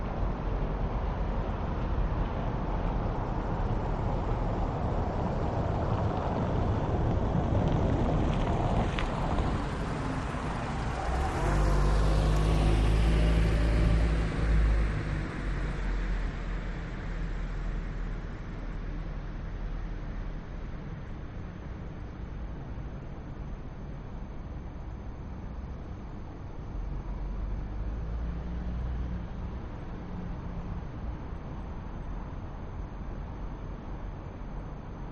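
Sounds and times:
city ambience at night: 0.0 - 35.1
cars passing by in a city at night: 4.3 - 18.0.

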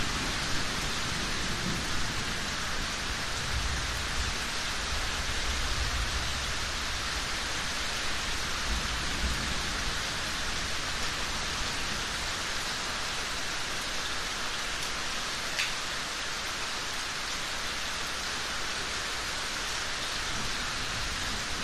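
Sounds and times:
approaching thunderstorm: 0.0 - 7.7, 8.6 - 12.2
rain drips in a yard: 0.0 - 21.6.

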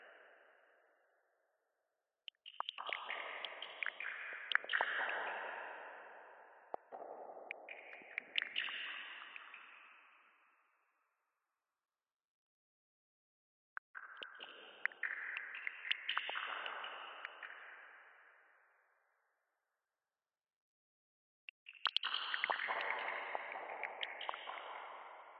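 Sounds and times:
sparse water drops dripping with echo in sewers: 2.3 - 10.4, 13.8 - 18.2, 21.7 - 25.3.

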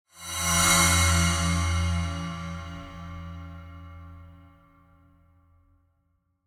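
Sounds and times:
eerie cymbal swell: 0.1 - 4.5.

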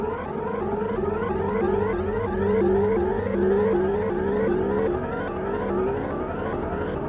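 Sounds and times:
glitchy sci-fi alarm-like sound design texture: 0.2 - 7.0.

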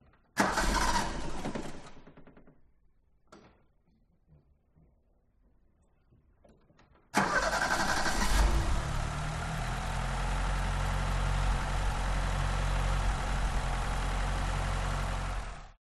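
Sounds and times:
car engine start with starter fault from driver side exterior: 0.4 - 2.0, 7.2 - 15.7.

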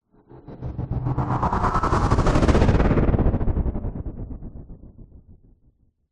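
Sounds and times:
fast dark chopped stuttering sweep with chorus: 0.2 - 5.0.

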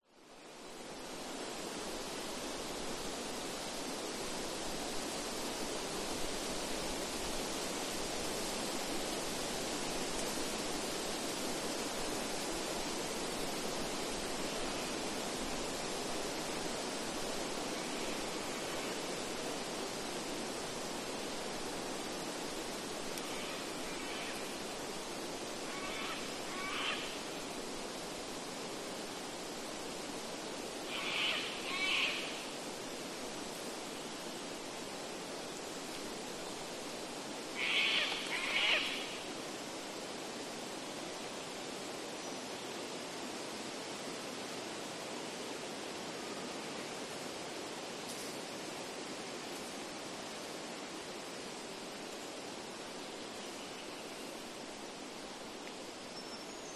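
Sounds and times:
tree leaves rustling: 0.0 - 56.7
wind in a rainforest: 0.0 - 56.7
cockatoo calling: 25.7 - 27.1, 30.9 - 32.4, 37.6 - 39.1.

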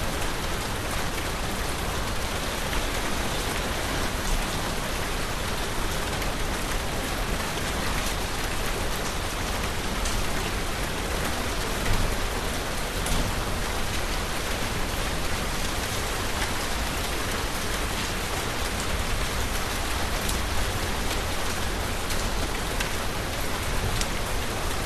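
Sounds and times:
heavy rain in a village in Bali, Indonesia: 0.0 - 24.8
traffic in a village in Bali: 0.0 - 24.8.

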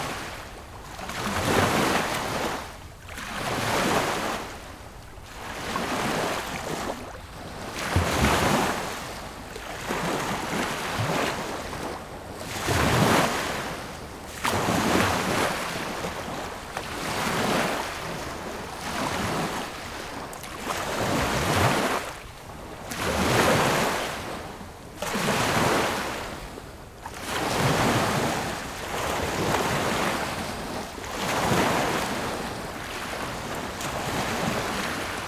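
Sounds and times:
lake shore ambience: 0.0 - 35.2.

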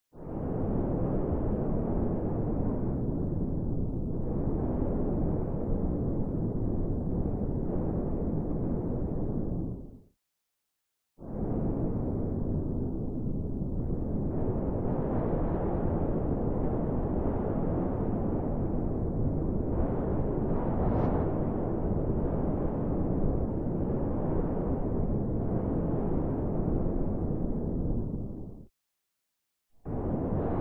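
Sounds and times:
soft abstract interior wind: 0.2 - 10.0, 11.2 - 28.7, 29.8 - 30.6.

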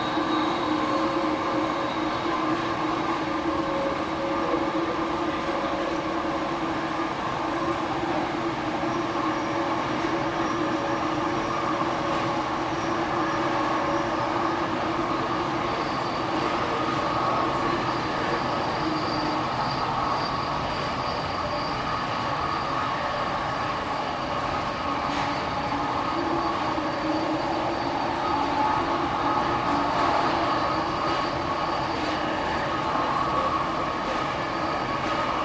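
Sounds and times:
sky train noise at JFK airport train station: 0.0 - 35.4.

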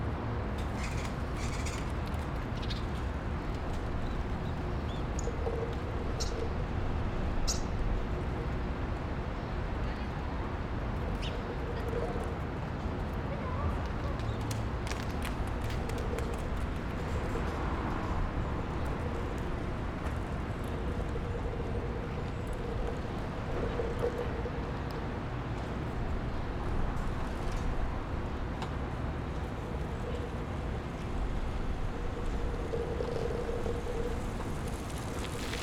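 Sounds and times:
wind in an alley on a quiet street: 0.0 - 35.6.

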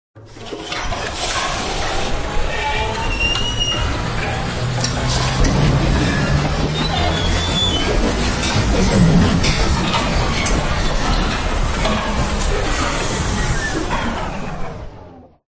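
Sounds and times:
sci-fi power up: 1.0 - 15.4.

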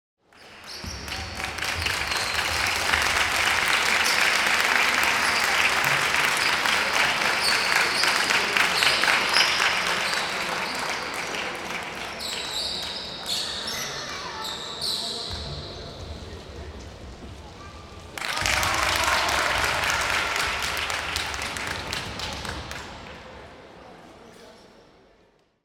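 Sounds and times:
light applause: 0.3 - 13.3, 18.1 - 23.5.

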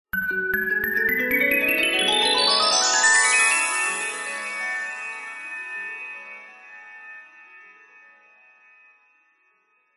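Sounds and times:
magic glissando of bright chimes: 0.2 - 7.0.

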